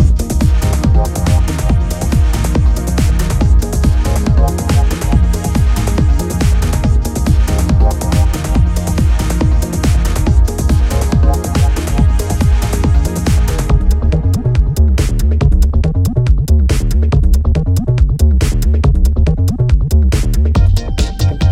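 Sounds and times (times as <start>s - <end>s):
techno music: 0.0s - 21.5s.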